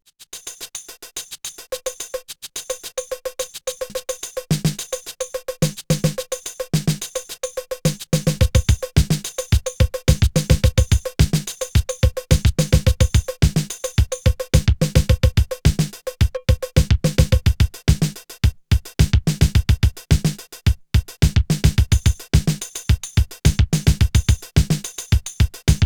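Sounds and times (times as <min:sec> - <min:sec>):
drums and percussion: 0:00.0 - 0:25.8.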